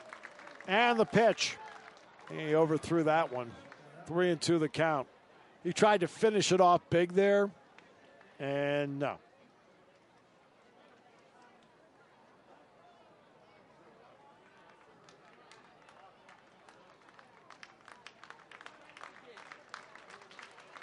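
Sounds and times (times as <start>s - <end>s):
baseball stadium crowd clapping rhythmically: 0.0s - 4.0s, 14.6s - 20.8s
speech: 0.7s - 1.6s, 2.3s - 7.6s, 8.4s - 9.3s.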